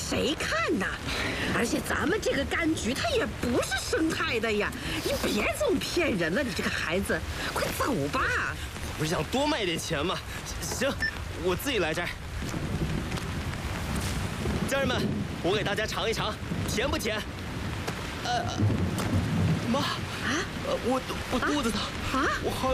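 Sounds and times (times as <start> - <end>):
heavy night rain on a citrus orchard: 0.0 - 22.7.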